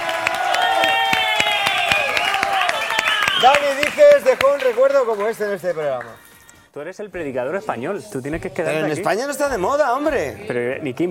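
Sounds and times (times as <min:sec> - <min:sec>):
audience applause: 0:00.0 - 0:06.5
speech: 0:03.4 - 0:06.2, 0:06.8 - 0:11.0.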